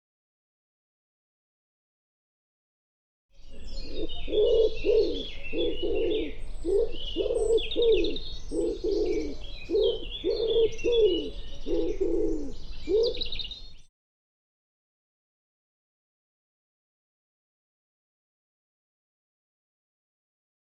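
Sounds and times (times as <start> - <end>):
bird cooing: 3.4 - 13.9.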